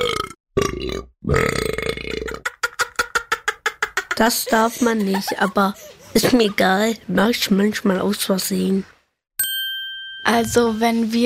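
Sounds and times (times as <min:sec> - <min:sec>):
person burping: 0:00.0 - 0:02.5
speech: 0:00.8 - 0:01.8, 0:04.2 - 0:08.9, 0:10.3 - 0:11.2
laughter: 0:02.4 - 0:07.0.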